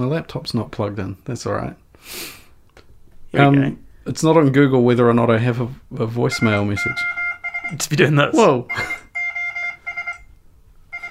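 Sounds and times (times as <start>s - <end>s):
speech: 0.0s - 2.4s, 3.3s - 9.0s
SOS in Morse code on phone: 6.3s - 11.0s.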